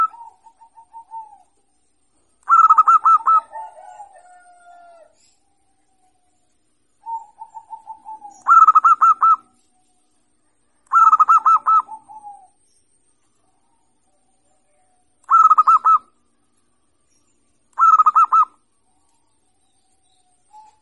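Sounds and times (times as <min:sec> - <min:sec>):
zebra dove singing: 0:00.0 - 0:01.7, 0:02.4 - 0:05.4, 0:07.0 - 0:09.6, 0:10.9 - 0:12.6, 0:13.4 - 0:16.2, 0:17.8 - 0:19.3, 0:20.2 - 0:20.8.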